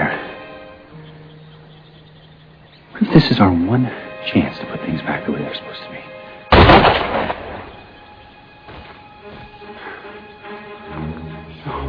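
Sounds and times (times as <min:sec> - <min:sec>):
speech: 0:03.0 - 0:06.2
gunshot: 0:06.5 - 0:07.7.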